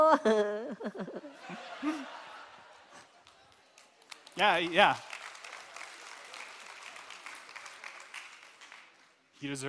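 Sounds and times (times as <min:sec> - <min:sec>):
speech: 0:00.1 - 0:02.2, 0:04.4 - 0:05.1, 0:09.4 - 0:09.6
laughter: 0:00.1 - 0:03.8
audience applause: 0:01.5 - 0:09.2.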